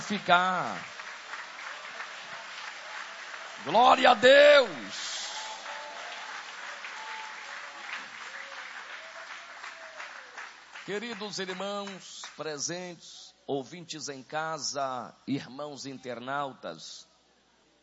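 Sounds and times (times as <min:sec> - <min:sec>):
audience applauding: 0:00.0 - 0:12.4
speech: 0:00.1 - 0:01.0, 0:03.6 - 0:05.1, 0:10.9 - 0:17.1.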